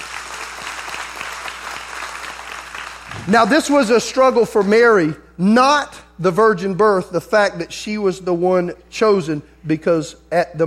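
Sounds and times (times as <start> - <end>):
audience hand clapping: 0.0 - 3.9
speech: 3.2 - 10.6.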